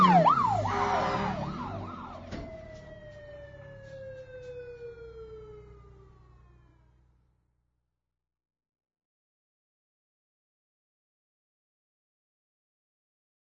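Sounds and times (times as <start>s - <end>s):
fire truck: 0.0s - 7.5s.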